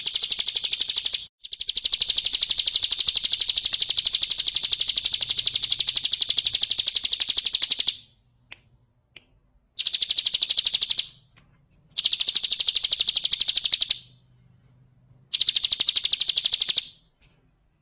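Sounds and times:
bird singing rapid high trills: 0.0s - 8.1s, 9.8s - 11.2s, 12.0s - 14.2s, 15.3s - 17.1s.

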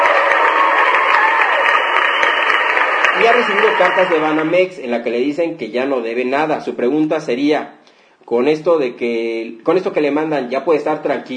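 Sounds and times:
applause of many hands clapping for a caller: 0.0s - 4.7s
speech: 3.2s - 11.3s.

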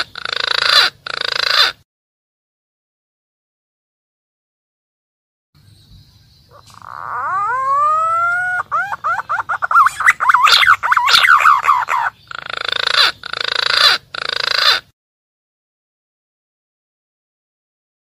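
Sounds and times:
green pigeon calling: 0.0s - 1.8s, 6.3s - 14.9s.

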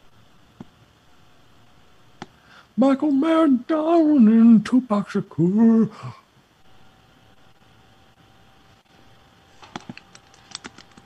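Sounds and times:
fan-like hum: 0.0s - 11.0s
speech: 2.8s - 6.2s
computer keyboard typing: 9.6s - 11.0s.

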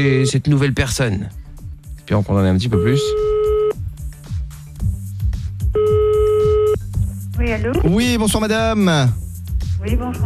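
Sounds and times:
speech: 0.0s - 1.4s, 2.1s - 3.3s, 7.5s - 9.2s, 9.8s - 10.2s
electronic telephone ringing tone: 2.8s - 3.7s, 5.8s - 6.8s
low rhythmic musical beat: 2.8s - 10.2s.

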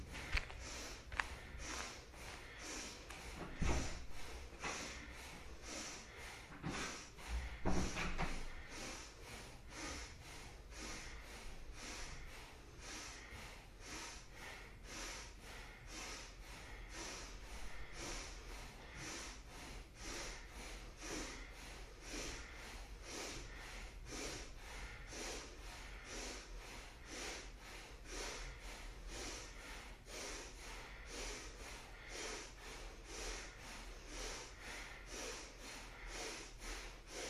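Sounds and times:
bhastrika bellows breathing, yoga breathing exercise: 0.0s - 37.2s.

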